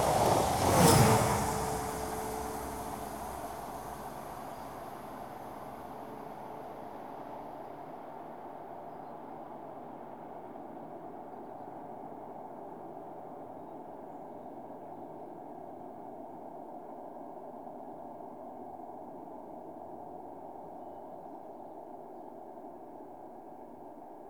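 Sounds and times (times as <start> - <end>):
diesel goods trains passing: 0.0 - 7.4.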